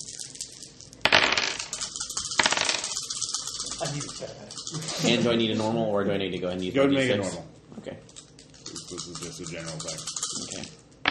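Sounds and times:
dice clattering across a hard surface: 0:00.0 - 0:04.8, 0:08.6 - 0:11.0
speech: 0:03.8 - 0:08.1, 0:08.9 - 0:10.8.

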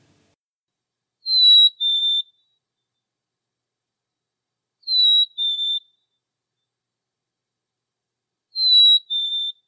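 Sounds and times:
bird mating calls of high clear whistled notes: 0:01.2 - 0:02.5, 0:04.8 - 0:06.0, 0:08.6 - 0:09.6.

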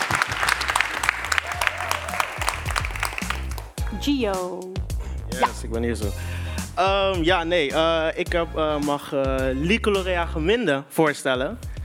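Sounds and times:
audience applause: 0:00.0 - 0:03.8
speech: 0:04.0 - 0:11.8.

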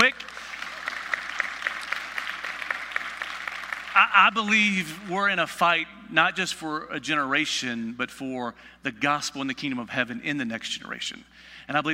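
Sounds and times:
speech: 0:00.0 - 0:00.4, 0:04.0 - 0:11.9
applause: 0:00.0 - 0:04.7.

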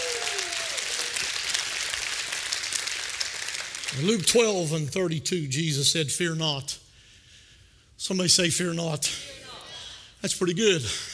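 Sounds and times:
audience shouting praise: 0:00.0 - 0:01.2
audience clapping: 0:00.0 - 0:04.3
speech: 0:03.9 - 0:06.8, 0:08.1 - 0:09.4, 0:10.2 - 0:11.1.

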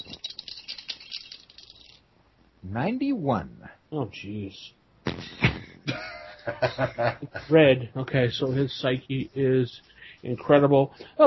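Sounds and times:
dice rattling and clattering: 0:00.0 - 0:02.0
speech: 0:02.6 - 0:04.8, 0:06.4 - 0:11.2
laughter: 0:05.3 - 0:07.6.

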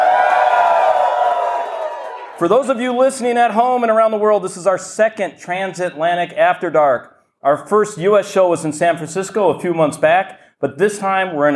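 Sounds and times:
crowd cheering in Atlanta: 0:00.0 - 0:03.1
speech: 0:02.4 - 0:11.5.

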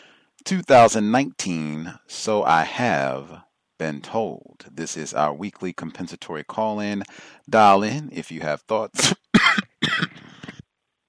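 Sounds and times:
speech: 0:00.4 - 0:09.2
person coughing harshly, nearly choking: 0:09.0 - 0:10.6
raspy clearing of the throat: 0:09.0 - 0:10.6.

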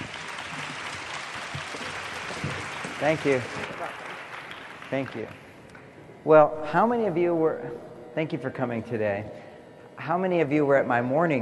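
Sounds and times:
audience applause welcoming an author: 0:00.0 - 0:05.5
speech: 0:03.0 - 0:03.7, 0:04.9 - 0:05.4, 0:06.2 - 0:09.4, 0:10.1 - 0:11.4.

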